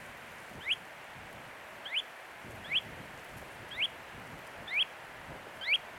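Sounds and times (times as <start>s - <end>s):
Kentish plover calls: 0.6s - 0.8s, 1.8s - 2.1s, 2.6s - 2.9s, 3.7s - 4.0s, 4.7s - 4.9s, 5.6s - 5.8s.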